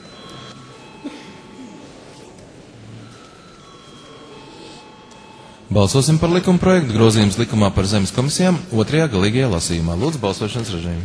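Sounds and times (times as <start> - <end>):
parliament chamber voting call bell ringing: 0.0 - 7.7
people murmuring and shuffling: 0.0 - 11.0
speech: 5.7 - 11.0.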